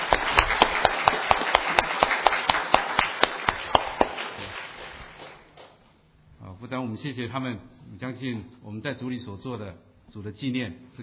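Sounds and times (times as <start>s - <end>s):
crowd clapping in rhythm: 0.0s - 5.8s
scattered applause: 0.0s - 5.8s
speech: 6.8s - 11.0s.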